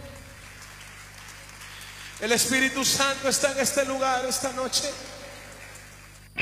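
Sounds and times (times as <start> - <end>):
audience applause: 0.0 - 6.3
speech: 2.2 - 5.2.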